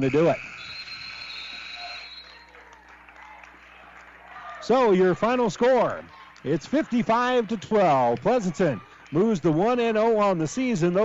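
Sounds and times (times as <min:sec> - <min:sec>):
speech: 0:00.0 - 0:00.5, 0:04.6 - 0:11.0
basketball game-ending buzzer horn: 0:00.0 - 0:02.3.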